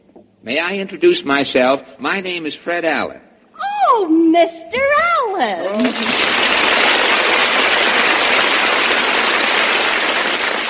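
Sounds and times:
speech: 0.4s - 3.3s, 3.9s - 6.4s
neighbors applauding: 5.8s - 10.6s.

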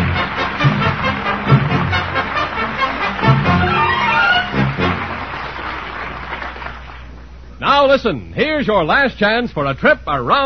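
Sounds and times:
ocean liner whistle: 0.2s - 5.4s
speech: 7.9s - 10.4s.

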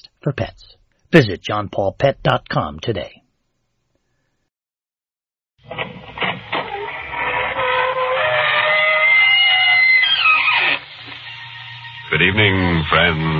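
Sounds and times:
speech: 0.0s - 3.2s, 12.1s - 13.3s
squeaking door opening: 5.7s - 12.1s.

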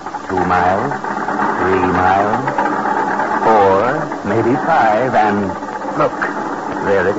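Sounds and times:
speech: 0.5s - 1.1s, 1.7s - 2.6s, 3.9s - 6.3s, 6.9s - 7.1s
small car engine driving through storm: 1.6s - 2.5s, 3.4s - 7.1s.

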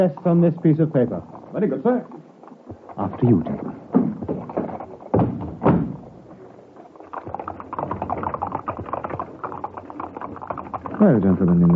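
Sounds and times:
speech: 0.0s - 3.8s, 11.0s - 11.7s
horse-drawn cab hooves clip-clopping: 0.0s - 11.7s
horse-drawn cab wheels rumbling: 0.0s - 11.7s
heavy thuds: 2.6s - 6.4s.

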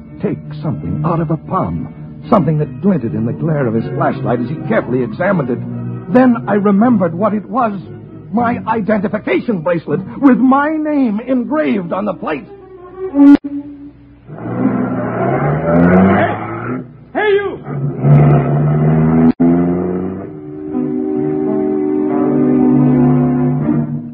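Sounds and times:
speech: 0.2s - 13.7s
car engine revving and driving off: 14.3s - 17.0s, 17.7s - 24.0s.

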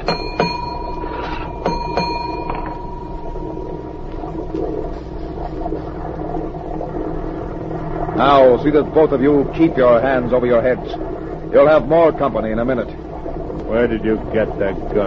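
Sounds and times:
ship engine room telegraph signal bells: 0.0s - 3.8s
speech: 8.2s - 13.0s, 13.6s - 15.0s.

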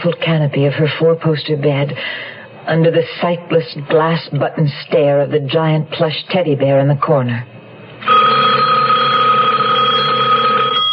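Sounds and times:
speech: 0.0s - 8.2s
telephone ringing: 8.0s - 10.9s.

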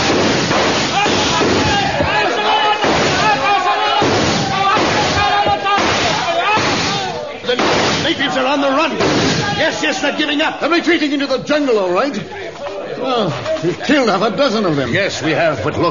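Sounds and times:
volley of gunfire from soldiers firing on command: 0.0s - 2.1s, 2.8s - 8.3s, 9.0s - 9.6s
speech: 9.7s - 15.8s.

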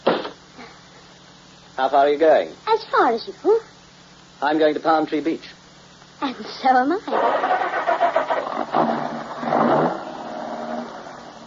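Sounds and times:
speech: 1.8s - 3.7s, 4.4s - 5.6s, 6.2s - 7.6s
car engine starting and idling: 7.1s - 11.2s.

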